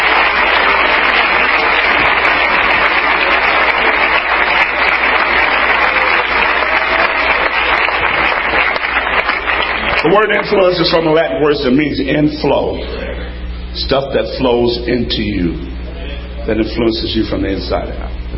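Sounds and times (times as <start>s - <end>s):
audience clapping hands: 0.0s - 11.0s
speech: 10.1s - 13.0s, 13.8s - 15.8s, 16.5s - 18.2s.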